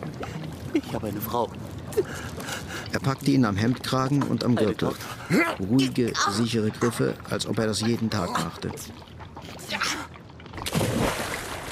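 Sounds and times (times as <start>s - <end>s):
soft sloshing water: 0.0s - 11.7s
speech: 0.7s - 9.1s
heavy splash of a weighted man thrown into the sea: 10.6s - 11.7s.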